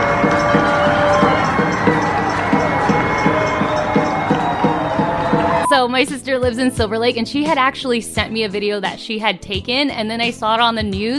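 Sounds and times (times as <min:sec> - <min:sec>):
whistles: 0:00.0 - 0:05.8
crowd cheering and shouting: 0:00.0 - 0:06.1
speech: 0:05.8 - 0:11.1.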